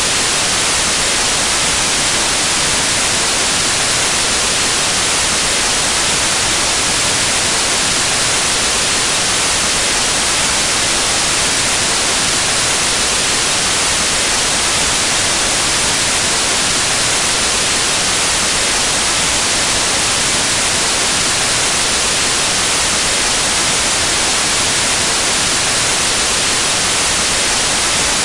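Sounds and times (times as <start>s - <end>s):
white noise: 0.0s - 28.2s.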